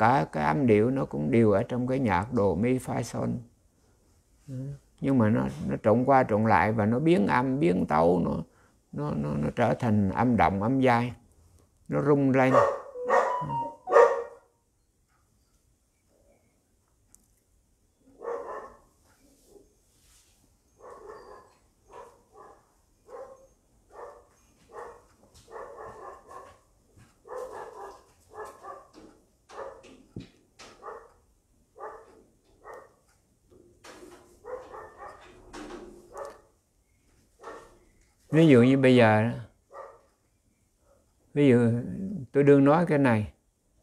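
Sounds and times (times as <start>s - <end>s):
speech: 0.0s - 3.5s, 4.5s - 11.2s, 11.9s - 13.7s, 38.4s - 39.4s, 41.4s - 43.3s
dog barking: 12.4s - 14.6s, 18.1s - 18.9s, 20.8s - 30.0s, 30.7s - 33.0s, 34.4s - 35.4s, 36.1s - 36.6s, 37.4s - 37.8s, 39.7s - 40.1s.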